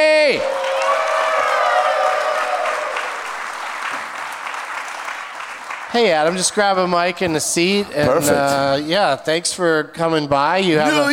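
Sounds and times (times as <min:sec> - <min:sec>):
speech: 0:00.0 - 0:00.6, 0:06.0 - 0:11.1
audience applauding at a live comedy show: 0:00.0 - 0:07.1.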